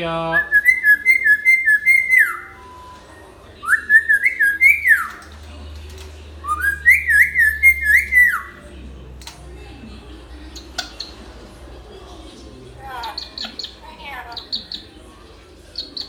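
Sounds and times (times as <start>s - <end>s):
hill myna singing: 0.3s - 5.2s, 6.4s - 8.6s.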